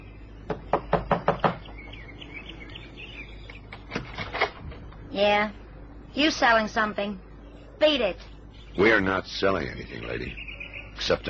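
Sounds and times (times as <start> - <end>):
knocking on a door: 0.5 - 1.8
speech: 5.2 - 10.4, 11.0 - 11.2.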